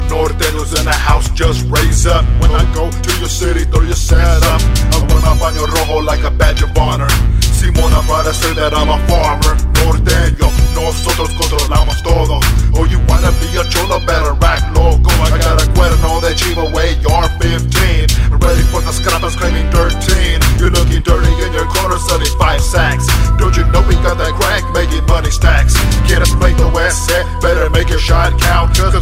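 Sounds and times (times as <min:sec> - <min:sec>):
norteño music: 0:00.0 - 0:29.0.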